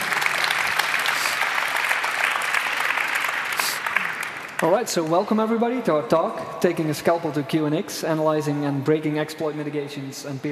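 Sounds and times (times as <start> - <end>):
audience applause: 0.0 - 5.1
speech: 4.6 - 10.4.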